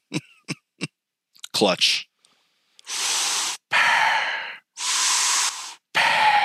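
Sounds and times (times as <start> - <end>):
speech: 1.6 - 2.1
voice imitating heavy mechanical respirator breathing: 2.8 - 6.4.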